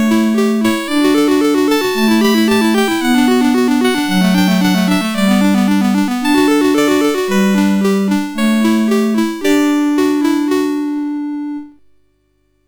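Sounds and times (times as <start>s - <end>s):
synthesizer sample: 0.1s - 11.7s.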